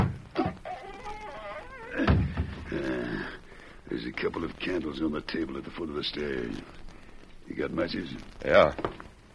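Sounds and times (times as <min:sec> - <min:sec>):
heavy wooden trap door hinges creaking open: 0:00.0 - 0:03.0
trap door thuds: 0:01.9 - 0:02.8
speech: 0:04.0 - 0:06.8, 0:07.5 - 0:09.1.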